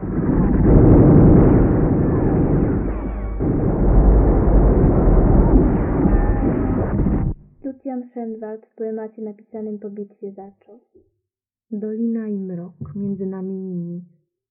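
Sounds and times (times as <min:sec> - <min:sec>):
light artillery cannonade: 0:00.0 - 0:07.4
speech: 0:08.5 - 0:11.1, 0:11.7 - 0:14.2.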